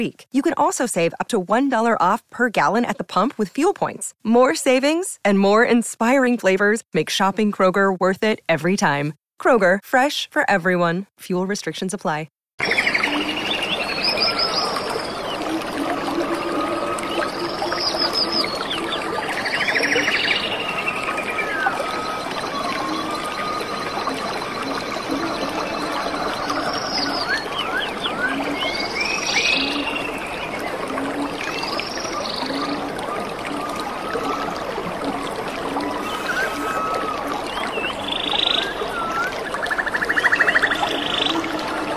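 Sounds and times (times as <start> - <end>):
speech: 0.0 - 12.8
birds whistling and trilling: 12.6 - 15.5, 16.8 - 30.8, 35.8 - 41.5
rushing water: 12.6 - 41.9.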